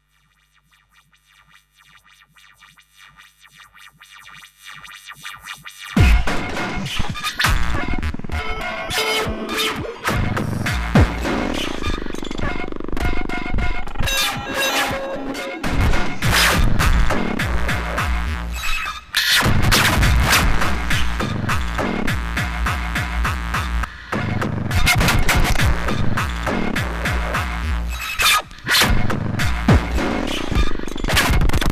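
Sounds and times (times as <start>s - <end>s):
industrial hardcore noise music: 5.2s - 31.7s.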